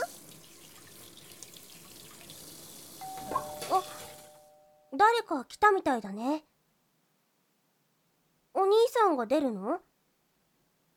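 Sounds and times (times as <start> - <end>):
running tap water while washing dishes: 0.0 - 4.4
speech: 5.0 - 6.5, 8.7 - 9.9.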